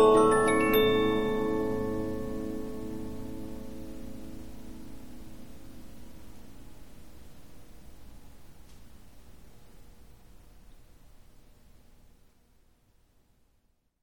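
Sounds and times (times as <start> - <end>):
Polyphon 15-inch disc music box playing: 0.0 - 3.4.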